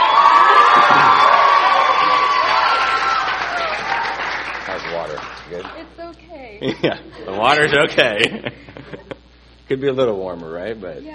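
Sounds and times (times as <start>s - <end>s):
crowd cheering and applauding: 0.0s - 5.8s
laughter: 6.6s - 9.3s
speech: 6.7s - 8.7s, 9.7s - 11.1s.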